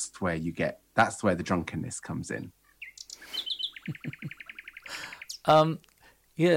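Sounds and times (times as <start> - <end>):
speech: 0.0 - 2.6, 3.2 - 4.4, 5.5 - 6.5
nightingale singing: 2.4 - 5.8.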